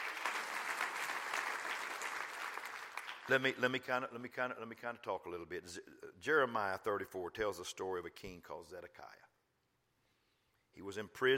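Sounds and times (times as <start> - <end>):
church congregation clapping hands during a sermon: 0.0 - 4.0
speech: 3.3 - 9.3, 10.8 - 11.3.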